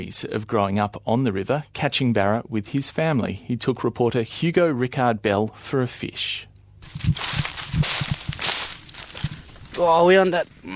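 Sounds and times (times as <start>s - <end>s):
speech: 0.0s - 7.9s, 9.8s - 10.7s
footsteps crunching along the bank of the Fitzroy River: 6.8s - 10.1s.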